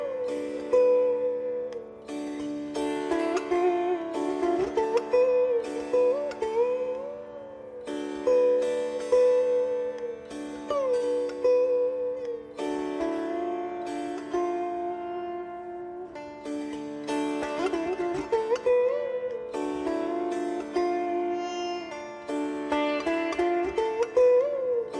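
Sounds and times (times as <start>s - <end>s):
Shivranjani Hindustani raag: 0.0s - 24.9s.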